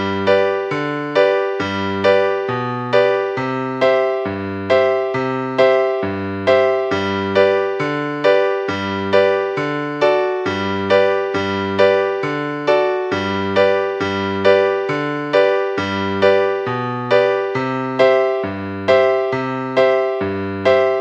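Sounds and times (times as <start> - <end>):
music accompaniment in G: 0.0 - 21.0.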